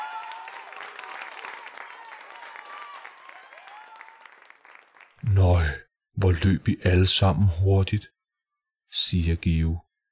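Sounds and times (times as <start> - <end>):
crowd applauding: 0.0 - 5.2
people cheering: 0.0 - 5.2
speech: 5.2 - 8.1, 8.9 - 9.8.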